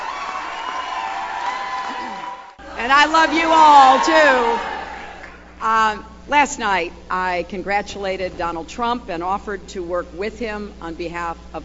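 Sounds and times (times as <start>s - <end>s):
rowdy crowd cheering and applauding at a political speech: 0.0s - 5.5s
speech: 2.8s - 4.7s, 5.6s - 11.6s.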